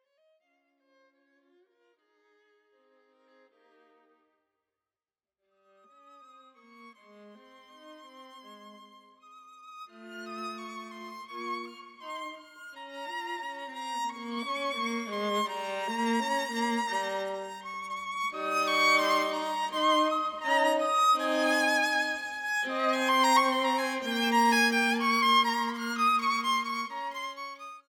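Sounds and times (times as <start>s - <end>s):
slow classical music: 7.1s - 27.8s.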